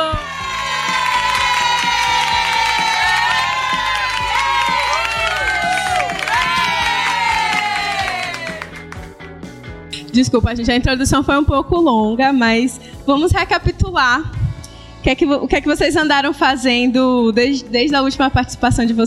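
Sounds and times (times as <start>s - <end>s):
applause and cheering: 0.0s - 9.2s
speech: 10.2s - 14.4s, 15.0s - 19.0s.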